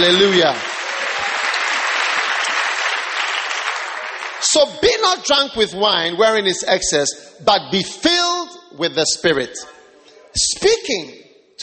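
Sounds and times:
speech: 0.0 - 0.7, 4.5 - 11.6
crowd applauding: 0.0 - 5.0.

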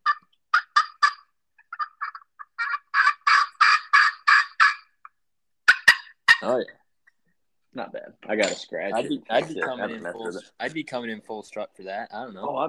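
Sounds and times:
homemade turkey call yelps: 0.0 - 6.5
speech: 6.4 - 6.8, 7.7 - 12.6.

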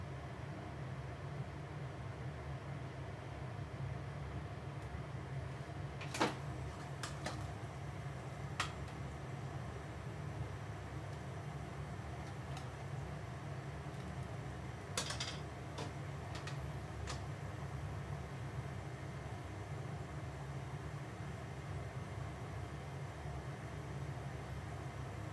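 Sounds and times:
steady low hum: 0.0 - 25.3
sharp clicks and clatters: 15.0 - 17.2.

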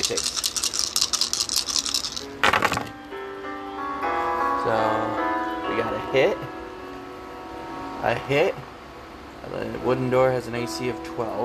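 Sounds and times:
plastic dice clattering on a hard surface: 0.0 - 3.0
speech: 0.1 - 0.4, 4.7 - 5.2, 5.8 - 6.6, 8.0 - 8.7, 9.4 - 11.4.

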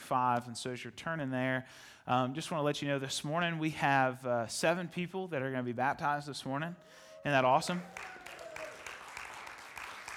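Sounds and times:
speech: 0.1 - 8.1
cheers and whoops: 7.0 - 10.1
audience clapping: 7.7 - 10.1.

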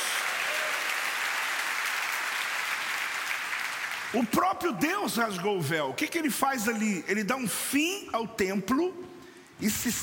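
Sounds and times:
audience applauding: 0.0 - 4.4
speech: 4.1 - 10.0.

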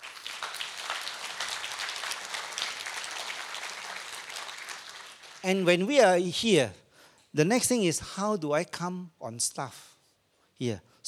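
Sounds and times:
audience applause: 0.0 - 5.7
speech: 5.4 - 6.8, 7.4 - 9.9, 10.6 - 11.0.

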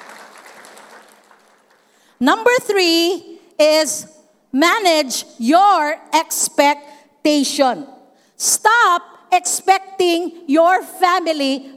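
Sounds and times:
audience clapping: 0.0 - 2.2
speech: 2.2 - 11.7.

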